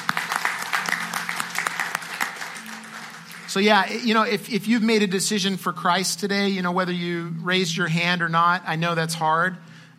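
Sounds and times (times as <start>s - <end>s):
church congregation clapping: 0.0s - 4.3s
speech: 3.6s - 9.7s.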